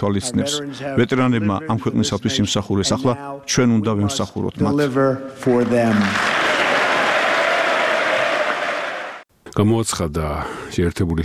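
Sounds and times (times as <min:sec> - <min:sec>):
speech: 0:00.0 - 0:06.3, 0:09.6 - 0:11.2
ovation in the US Congress for the president's speech: 0:05.4 - 0:09.2.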